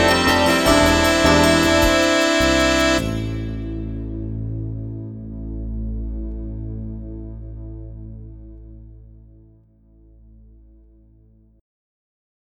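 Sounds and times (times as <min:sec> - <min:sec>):
saxophone: 0:00.0 - 0:04.2.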